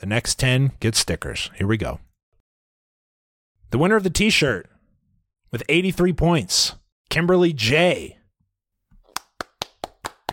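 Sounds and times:
speech: 0:00.0 - 0:02.1, 0:03.7 - 0:04.7, 0:05.5 - 0:08.2
crisp hand claps: 0:09.0 - 0:10.3.

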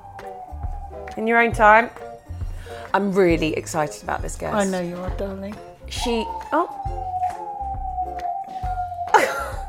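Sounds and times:
siren passing outside: 0:00.0 - 0:02.4, 0:05.9 - 0:09.6
speech: 0:01.2 - 0:02.0, 0:02.9 - 0:06.8.

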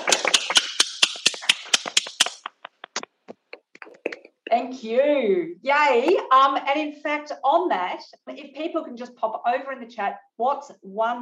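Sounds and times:
online audience applause: 0:00.0 - 0:02.2
speech: 0:04.6 - 0:11.2.

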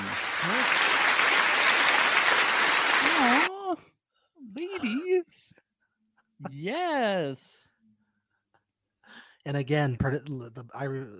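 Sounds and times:
audience applause: 0:00.0 - 0:03.5
speech: 0:04.5 - 0:05.6, 0:06.4 - 0:07.6, 0:09.4 - 0:11.1.

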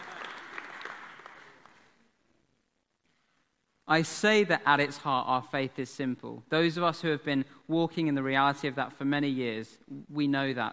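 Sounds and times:
audience clapping: 0:00.0 - 0:02.0
speech: 0:03.9 - 0:10.7.

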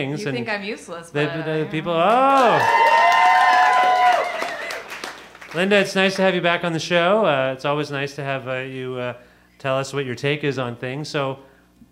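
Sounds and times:
speech: 0:00.0 - 0:03.0, 0:05.5 - 0:11.8
audience applause: 0:01.8 - 0:06.3.

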